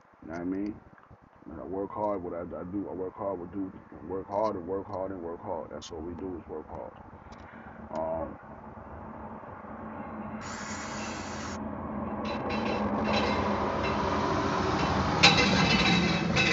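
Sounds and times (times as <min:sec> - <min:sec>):
speech: 0:00.2 - 0:00.9, 0:01.5 - 0:07.2, 0:07.9 - 0:08.5
school bus driving past: 0:06.9 - 0:16.5.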